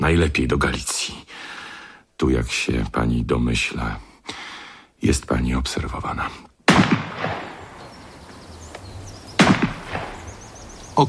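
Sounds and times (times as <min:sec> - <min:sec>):
speech: 0:00.0 - 0:01.5, 0:02.2 - 0:06.5
gunshots during shooting practice: 0:06.7 - 0:07.8, 0:09.4 - 0:10.4.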